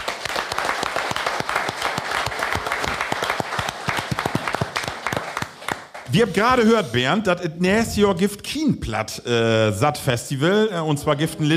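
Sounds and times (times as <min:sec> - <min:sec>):
crowd applauding: 0:00.0 - 0:06.9
speech: 0:06.1 - 0:11.5.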